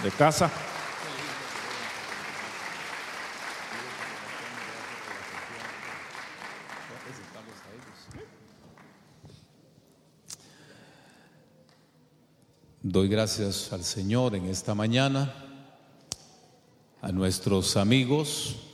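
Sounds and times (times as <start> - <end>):
speech: 0.0 - 0.7, 13.0 - 15.4, 17.1 - 18.7
loud audience applause: 0.0 - 8.9.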